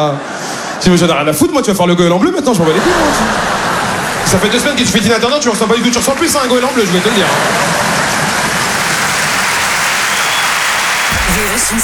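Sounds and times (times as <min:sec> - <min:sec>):
speech: 0:00.0 - 0:03.7, 0:04.3 - 0:07.9, 0:11.6 - 0:11.8
laughter: 0:00.0 - 0:09.9
audience applause: 0:02.6 - 0:11.8.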